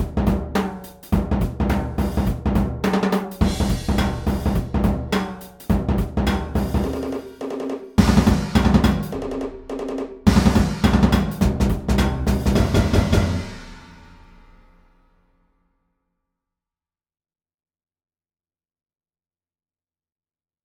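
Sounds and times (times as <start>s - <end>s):
punk funk music: 0.0s - 14.4s
percussion: 0.0s - 14.7s.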